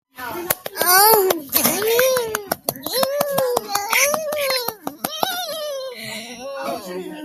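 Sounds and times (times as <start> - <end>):
clapping: 0.5 - 5.4.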